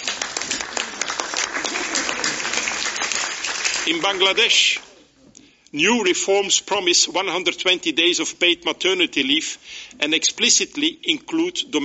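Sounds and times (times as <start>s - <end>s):
audience applause: 0.0s - 4.8s
speech: 3.9s - 4.8s, 5.7s - 11.8s.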